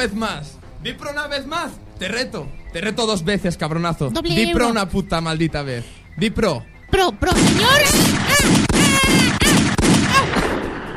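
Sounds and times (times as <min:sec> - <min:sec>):
speech: 0:00.0 - 0:08.6
gunshots fired at someone: 0:07.2 - 0:10.9
person shouting: 0:07.6 - 0:10.4.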